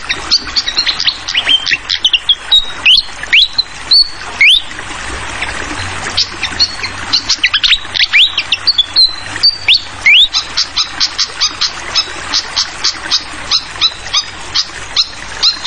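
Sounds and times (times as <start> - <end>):
fantail singing whistled upslurs: 0.0 - 4.7, 6.2 - 12.1
water trickling and splashing: 0.0 - 15.6.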